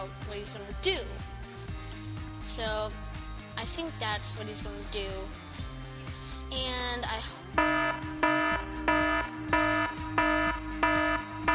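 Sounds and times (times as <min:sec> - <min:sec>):
speech: 0:00.0 - 0:01.4, 0:02.4 - 0:05.7, 0:06.5 - 0:08.8
electronic ending alarm signalling the close of a session: 0:07.6 - 0:11.5.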